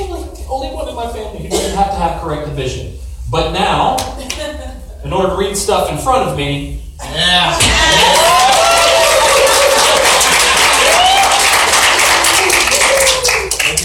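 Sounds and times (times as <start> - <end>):
speech: 0.6 - 8.2
audience clapping in support: 7.7 - 13.8.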